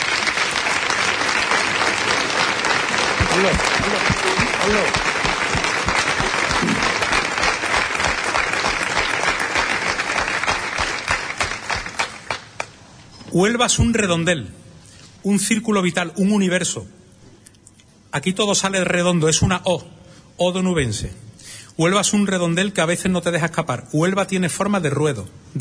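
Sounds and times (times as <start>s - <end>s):
audience applause for the band: 0.0s - 12.8s
speech: 3.4s - 4.1s, 4.7s - 5.1s, 13.4s - 14.6s, 15.2s - 17.0s, 18.1s - 25.5s.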